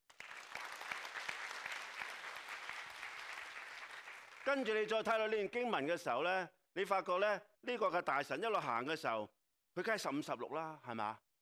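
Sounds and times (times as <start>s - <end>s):
audience applause: 0.0s - 4.9s
speech: 4.4s - 11.2s.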